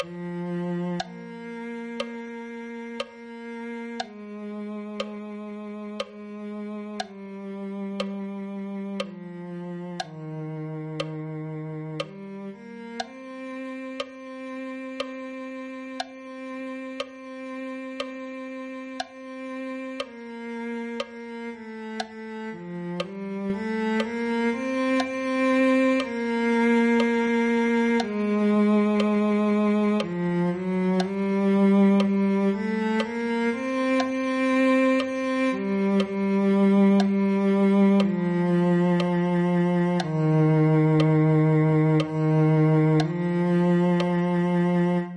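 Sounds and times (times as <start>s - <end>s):
cello: 0.0s - 45.1s.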